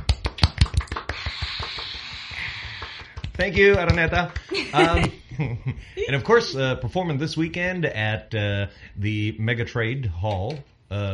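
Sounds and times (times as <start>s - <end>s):
applause sound effect: 0.1s - 4.5s
speech: 3.4s - 11.1s
laughter: 4.4s - 6.4s.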